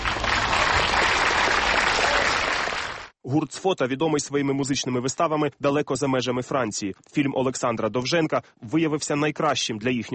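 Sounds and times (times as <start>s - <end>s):
audience applause in a hall: 0.0s - 3.1s
speech: 3.3s - 10.1s.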